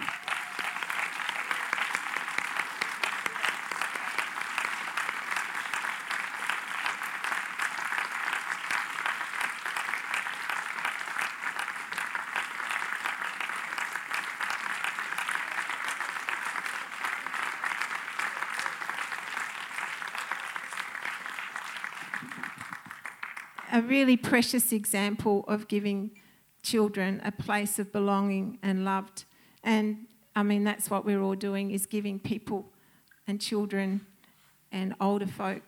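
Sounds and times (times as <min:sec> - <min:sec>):
live audience applause: 0:00.0 - 0:23.9
speech: 0:23.8 - 0:32.7, 0:33.3 - 0:34.1, 0:34.7 - 0:35.6.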